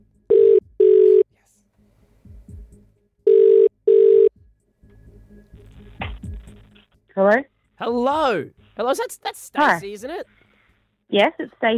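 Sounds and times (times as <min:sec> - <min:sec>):
telephone ringing down the line: 0:00.3 - 0:01.2, 0:03.3 - 0:04.3
speech: 0:07.2 - 0:10.4, 0:11.1 - 0:11.7.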